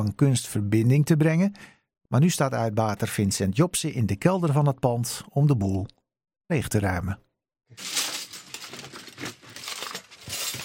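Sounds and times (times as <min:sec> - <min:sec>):
speech: 0:00.0 - 0:08.1
metal cutlery clinking and rattling: 0:07.8 - 0:10.6.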